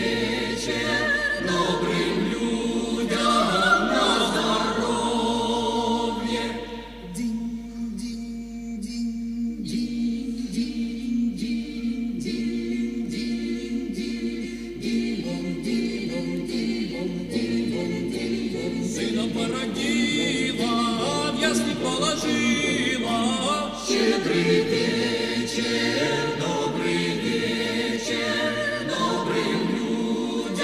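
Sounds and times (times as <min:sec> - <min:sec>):
choir singing: 0:00.0 - 0:30.6.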